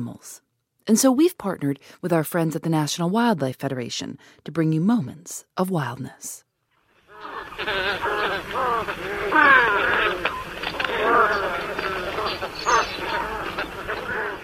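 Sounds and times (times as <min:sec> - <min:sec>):
speech: 0:00.0 - 0:06.4
flock of white ibis calling: 0:07.1 - 0:14.4.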